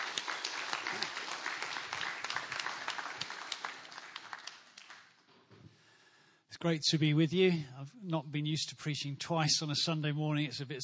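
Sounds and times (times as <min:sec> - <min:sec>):
audience applause: 0:00.0 - 0:05.2
speech: 0:06.6 - 0:10.8.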